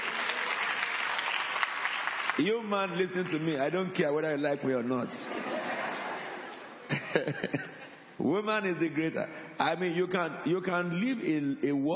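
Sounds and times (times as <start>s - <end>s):
audience clapping: 0.0s - 4.0s
speech: 2.4s - 5.4s, 7.1s - 11.9s
laughter: 5.2s - 8.0s.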